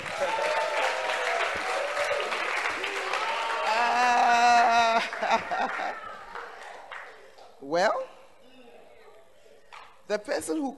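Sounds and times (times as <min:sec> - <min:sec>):
church audience applauding to welcome the pastor: 0:00.0 - 0:07.2
laughter: 0:03.3 - 0:06.8
speech: 0:10.1 - 0:10.7.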